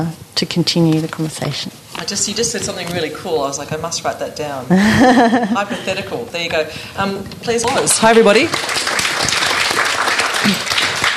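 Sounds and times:
speech: 0.0 - 8.9
laughter: 4.7 - 6.2
audience applause: 7.6 - 11.1.

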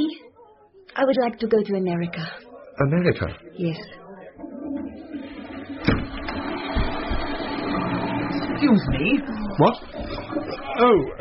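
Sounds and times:
speech: 1.0 - 4.0, 8.6 - 11.1
toilet door banging: 4.8 - 10.8.

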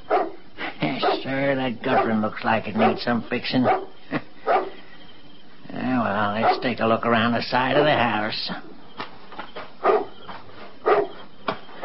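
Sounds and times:
dog barking outside a house at night: 0.1 - 0.4, 1.0 - 4.7, 6.4 - 6.7, 7.7 - 8.1, 9.8 - 10.2, 10.8 - 11.8
speech: 0.9 - 4.2, 6.4 - 8.7.

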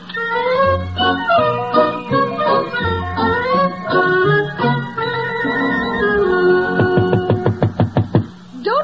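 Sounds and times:
orchestral tune: 0.3 - 7.8
knocking on a door: 6.8 - 8.4.

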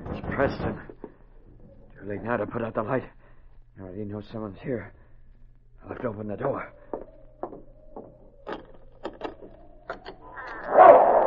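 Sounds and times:
low steady hum: 0.0 - 11.2
speech: 0.4 - 0.9, 2.0 - 3.2, 3.8 - 5.0, 5.8 - 7.7
dog barking: 10.6 - 11.2.

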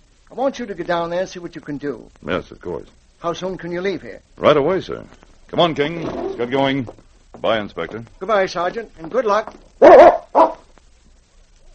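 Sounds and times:
speech: 0.3 - 10.4
dog barking: 9.8 - 10.7.

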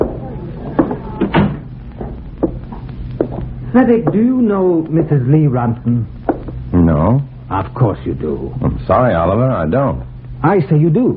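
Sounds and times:
door shutting: 0.8 - 2.2
speech: 3.7 - 11.1.

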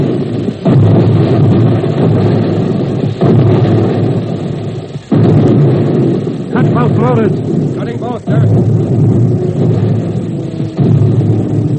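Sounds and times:
depth charges exploding underwater: 0.0 - 11.7.

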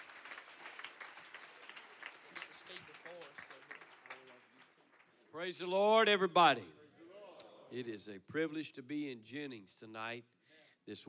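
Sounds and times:
audience hand clapping: 0.0 - 5.3
speech: 5.4 - 6.8, 7.7 - 11.0.

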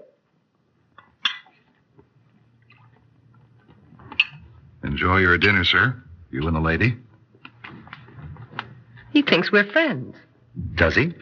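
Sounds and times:
champagne glass clinking: 1.0 - 1.7, 4.1 - 4.5
speech: 4.8 - 7.1, 9.2 - 11.2.

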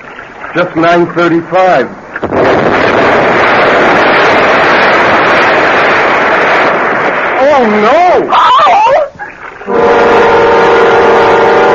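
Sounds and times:
sustained roaring rush: 0.0 - 11.7
speech: 0.5 - 2.8, 7.6 - 8.9
time bomb exploding aboard a boat in fog: 2.2 - 8.3.

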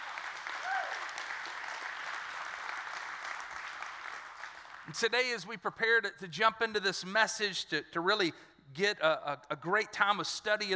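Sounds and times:
audience clapping: 0.0 - 5.4
speech: 4.9 - 10.7.

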